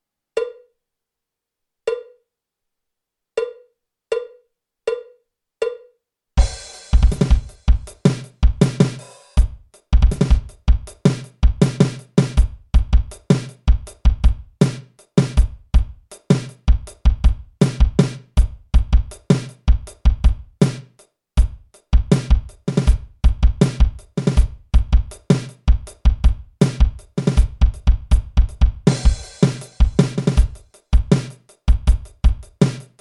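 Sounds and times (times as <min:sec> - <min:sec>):
jazz fusion drum kit solo: 0:06.4 - 0:32.9.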